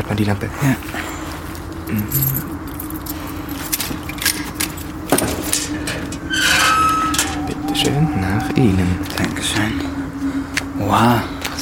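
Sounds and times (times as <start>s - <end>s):
steady low hum: 0.0s - 11.6s
speech: 0.2s - 1.2s, 1.9s - 2.6s, 7.8s - 10.0s, 10.8s - 11.6s
keys jangling in a metal lock unlocking crypt door: 1.9s - 8.2s.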